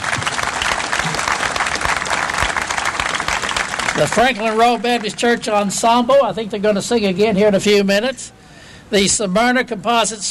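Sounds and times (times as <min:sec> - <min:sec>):
audience applause: 0:00.0 - 0:05.4
speech: 0:04.0 - 0:10.2.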